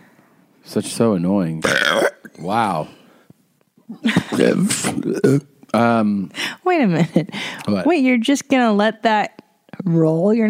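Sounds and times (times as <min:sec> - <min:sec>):
speech: 0:00.7 - 0:03.0, 0:03.9 - 0:10.4
burp: 0:01.6 - 0:02.5, 0:04.4 - 0:05.5.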